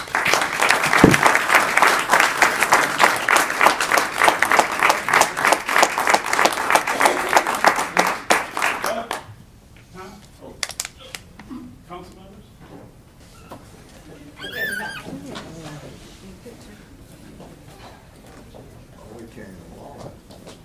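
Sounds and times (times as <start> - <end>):
audience applause: 0.0 - 9.2.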